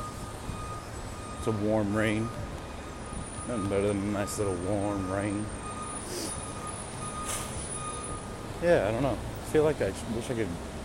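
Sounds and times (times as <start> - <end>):
garbage truck reversing beeps: 0.0 - 8.6
street noise: 0.0 - 10.8
speech: 1.4 - 2.4, 3.5 - 6.4, 8.6 - 10.7.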